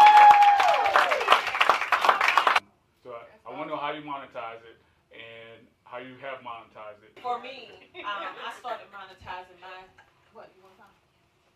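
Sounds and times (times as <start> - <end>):
audience applause: 0.0 - 2.6
speech: 6.0 - 10.8.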